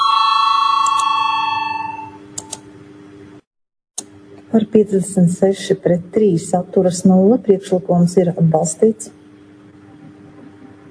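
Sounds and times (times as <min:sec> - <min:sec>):
bell ringing in the Latvian parliament to call a vote: 0:00.0 - 0:02.2
speech: 0:04.5 - 0:09.2.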